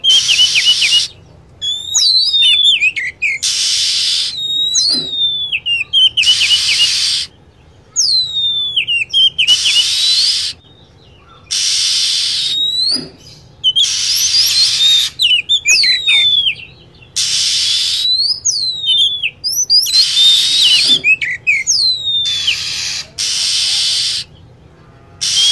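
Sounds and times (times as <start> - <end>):
lovebird calls: 0.0 - 25.5.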